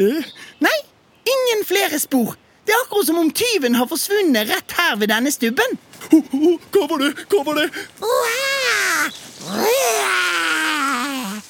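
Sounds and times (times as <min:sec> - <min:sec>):
speech: 0:00.0 - 0:00.8, 0:01.5 - 0:08.4
voice imitating a small lion roar: 0:08.0 - 0:11.4.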